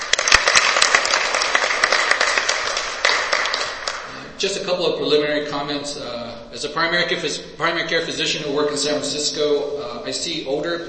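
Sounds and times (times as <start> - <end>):
audience applause: 0.0 - 4.1
speech: 4.4 - 10.8.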